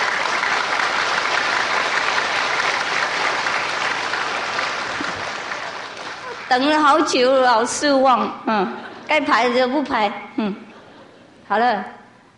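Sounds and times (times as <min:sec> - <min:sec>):
crowd applause: 0:00.0 - 0:07.2
speech: 0:06.5 - 0:10.7, 0:11.5 - 0:12.0.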